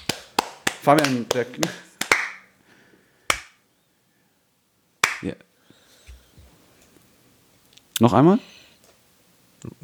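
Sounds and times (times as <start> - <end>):
sharp hand claps: 0.0 - 2.5, 3.3 - 3.6, 5.0 - 5.3
speech: 0.8 - 1.9, 5.2 - 5.5, 8.0 - 8.5, 9.6 - 9.8.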